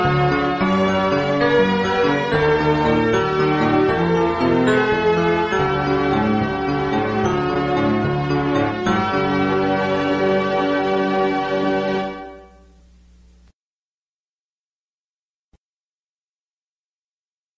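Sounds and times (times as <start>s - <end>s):
instrumental music: 0.0s - 13.0s.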